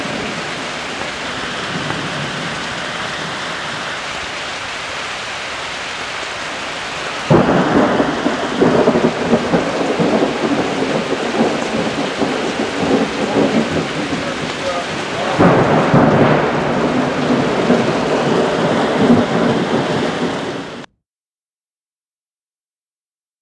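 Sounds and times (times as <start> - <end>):
rain: 0.0 - 20.9
thunder: 7.3 - 20.9.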